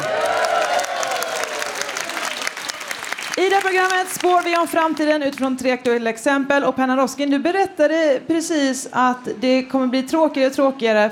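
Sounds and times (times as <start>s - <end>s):
crowd cheering: 0.0s - 4.4s
live audience applauding: 0.0s - 5.1s
speech: 3.6s - 11.1s.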